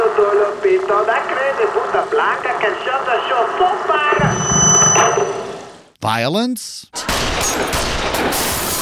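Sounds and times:
speech: 0.2 - 5.2, 6.0 - 8.5
gunshots: 7.0 - 8.8.

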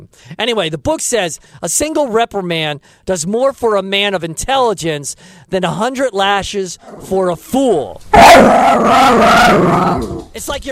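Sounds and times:
speech: 0.0 - 10.7
pit bull growling bark-like cry: 8.2 - 10.3.

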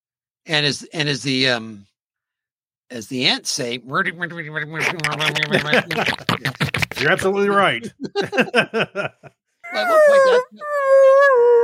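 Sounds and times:
speech: 0.5 - 1.9, 2.9 - 11.6
human voice imitating a whale call: 4.8 - 7.2, 9.7 - 11.6
laughter: 4.8 - 10.5.

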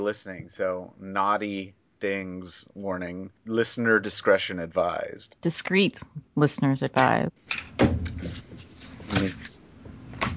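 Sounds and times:
speech: 0.0 - 8.4, 9.2 - 9.5
papers shuffling: 8.1 - 10.3.

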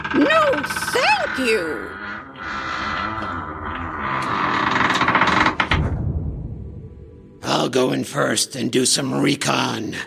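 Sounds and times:
massive wooden doors creaking open: 0.0 - 5.9
speech: 0.1 - 2.7, 7.6 - 10.0.

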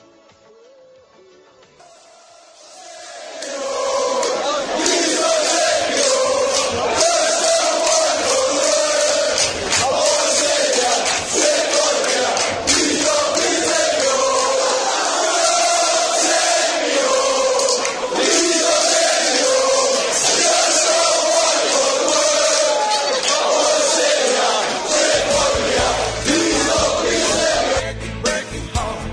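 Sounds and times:
Newcastle football supporters singing a stadium chant: 1.8 - 29.0.

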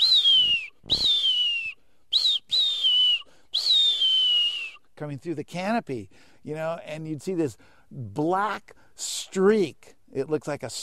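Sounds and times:
marbled murrelet calling: 0.0 - 4.8
speech: 5.0 - 10.8.

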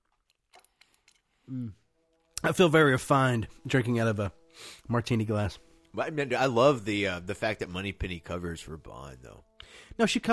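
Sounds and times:
chewing an olive: 0.0 - 1.5
speech: 1.5 - 1.8, 2.4 - 10.3.

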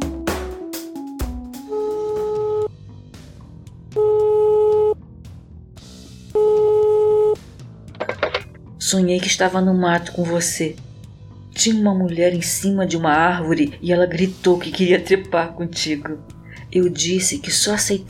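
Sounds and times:
telephone dialing beeps: 1.8 - 2.7, 4.0 - 5.0, 6.4 - 7.4
speech: 8.9 - 10.8, 11.6 - 18.0.

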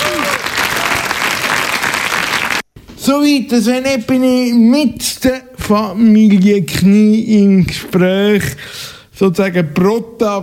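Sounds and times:
audience applause: 0.0 - 2.6
speech: 3.1 - 10.4.

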